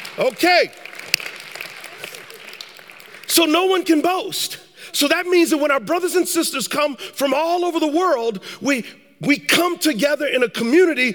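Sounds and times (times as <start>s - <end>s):
audience clapping: 0.0s - 4.0s
speech: 0.2s - 0.9s, 3.3s - 11.1s.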